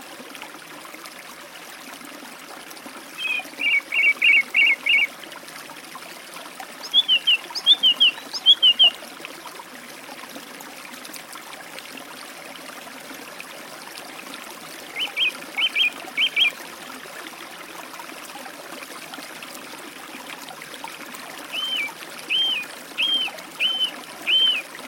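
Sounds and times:
song thrush singing by a forest stream: 3.2s - 5.1s, 6.8s - 8.9s, 15.0s - 16.6s, 21.5s - 24.7s.

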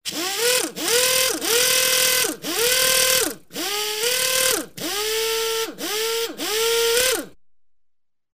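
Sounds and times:
pneumatic impact wrench idling: 0.1s - 7.4s.

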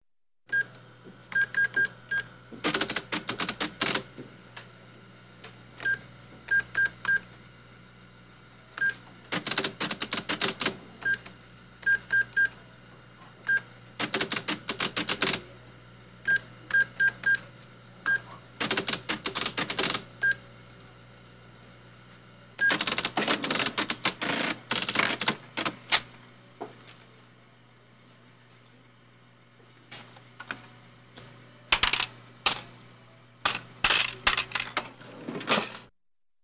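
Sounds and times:
electronic cash register printing receipt: 0.5s - 4.2s, 8.7s - 12.6s, 13.4s - 15.6s, 16.2s - 20.4s, 22.6s - 26.1s, 31.7s - 32.7s
electronic cash register key presses: 2.6s - 4.1s, 8.8s - 11.2s, 14.0s - 15.5s, 18.6s - 20.1s, 22.6s - 26.1s, 31.7s - 32.7s, 33.4s - 35.9s.

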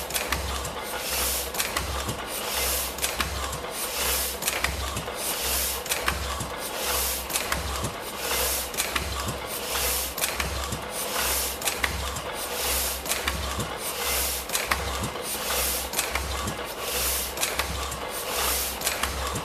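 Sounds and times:
printing press machine: 0.0s - 19.4s.

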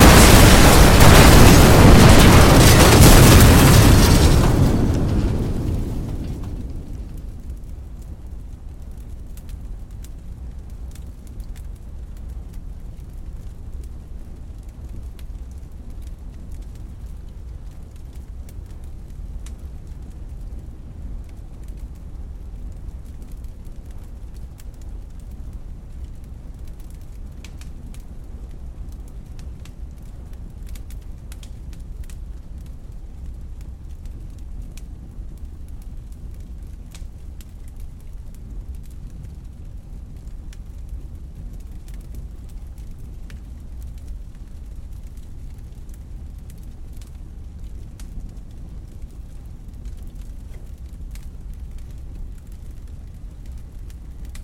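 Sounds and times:
double monstrous explosion: 0.0s - 7.6s
campfire crackling: 0.0s - 54.4s.

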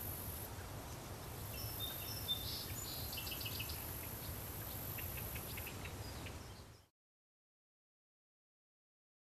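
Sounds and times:
cicadas in a village setting: 0.0s - 0.7s, 1.3s - 6.8s
wind in a village setting: 0.0s - 7.0s
birds chirping in a village setting: 0.9s - 6.9s.

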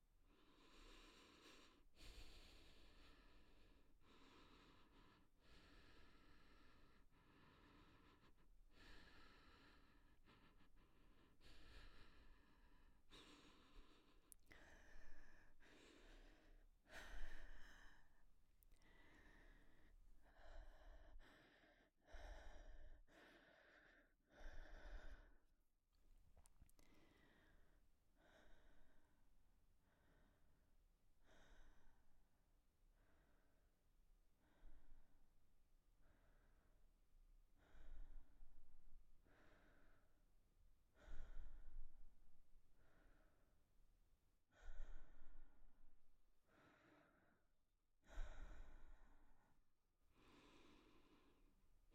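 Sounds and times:
woman breathing delicately: 0.0s - 25.5s, 26.3s - 43.8s, 44.4s - 51.9s.

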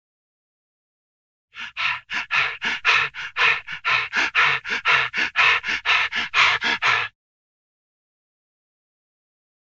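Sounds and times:
cartoon breathing: 1.6s - 7.1s.

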